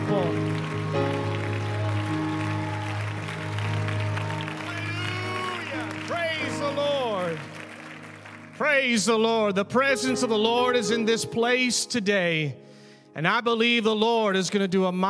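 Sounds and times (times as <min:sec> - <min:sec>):
audience clapping hands: 0:00.0 - 0:09.6
speech: 0:08.6 - 0:12.6, 0:13.2 - 0:15.0.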